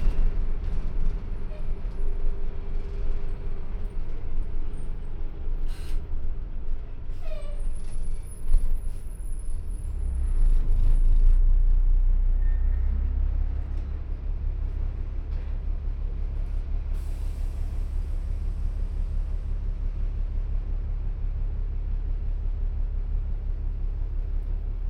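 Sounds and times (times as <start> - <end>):
bus interior ambience: 0.0 - 24.8.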